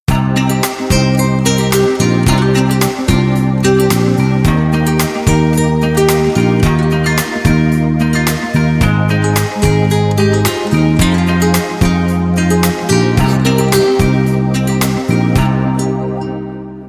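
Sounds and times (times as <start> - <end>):
mobile phone ringtone: 0.2 - 16.8.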